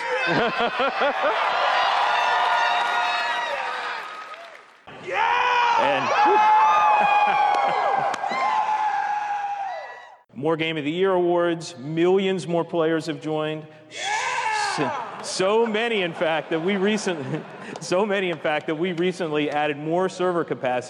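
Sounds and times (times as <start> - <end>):
laughter: 0.0 - 2.4, 5.8 - 8.5, 14.7 - 19.5
conference crowd cheering and shouting: 0.0 - 10.2, 13.9 - 17.0
speech: 0.3 - 1.6, 5.8 - 8.4, 10.4 - 14.0, 14.8 - 20.8.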